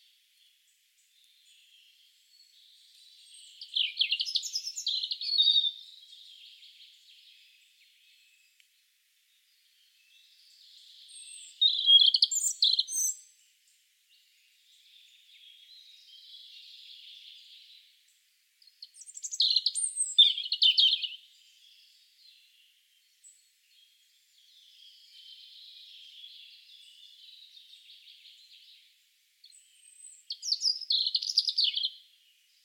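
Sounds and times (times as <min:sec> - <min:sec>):
European robin song: 0:00.0 - 0:32.6.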